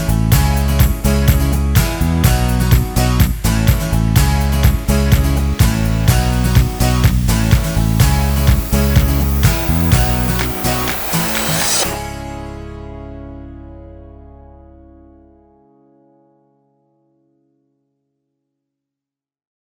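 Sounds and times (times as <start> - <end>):
upbeat uplifting corporate background music: 0.0 - 12.8.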